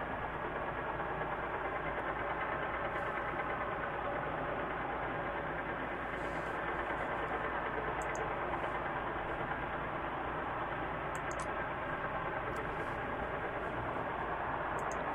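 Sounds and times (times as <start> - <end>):
ship engine noise: 0.0 - 15.1.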